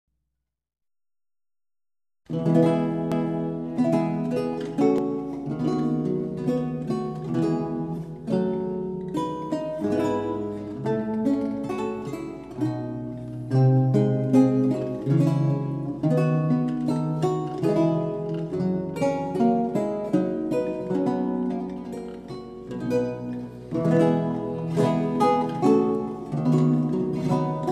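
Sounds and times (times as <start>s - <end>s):
lute duet sarabande: 2.3s - 27.6s.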